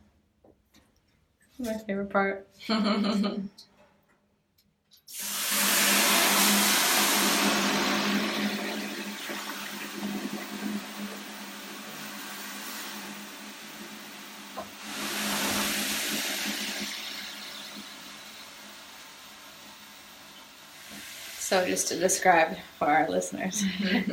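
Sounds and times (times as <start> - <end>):
speech: 1.6 - 3.7, 21.5 - 24.1
laughter: 2.7 - 3.5, 23.5 - 24.1
steam hissing into a steam room: 5.1 - 24.1.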